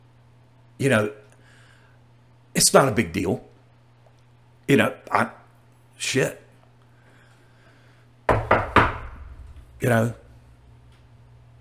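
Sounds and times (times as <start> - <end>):
speech: 0.8 - 1.2, 2.6 - 3.5, 4.7 - 5.4, 6.0 - 6.4, 9.8 - 10.2
knocking on wood: 8.3 - 9.9.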